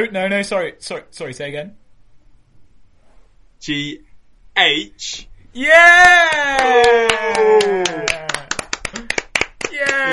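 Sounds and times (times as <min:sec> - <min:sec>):
speech: 0:00.0 - 0:01.8, 0:03.6 - 0:08.2
applause: 0:06.3 - 0:10.1.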